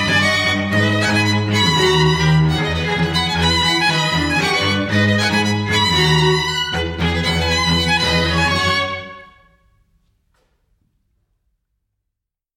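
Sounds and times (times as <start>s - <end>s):
string quartet: 0.0s - 9.4s.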